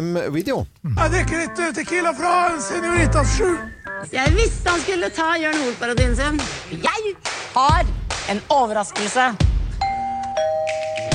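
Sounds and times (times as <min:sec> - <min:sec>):
speech: 0:00.0 - 0:09.5
doorbell ringing: 0:09.8 - 0:11.1.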